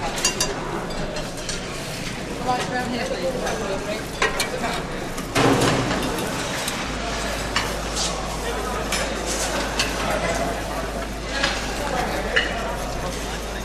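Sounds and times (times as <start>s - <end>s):
people chatting in an army cookhouse: 0.0s - 13.6s.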